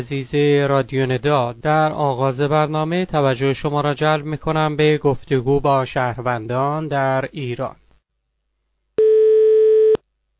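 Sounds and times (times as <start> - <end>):
speech: 0.0 - 7.8
ringback tone of an outgoing telephone call: 9.0 - 10.0.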